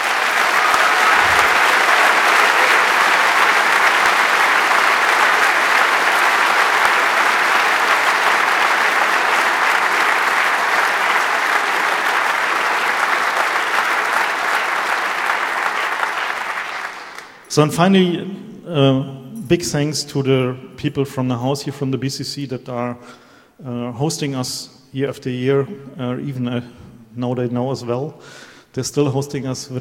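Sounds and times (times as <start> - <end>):
loud sustained applause from a large audience: 0.0 - 17.5
speech: 17.6 - 29.7.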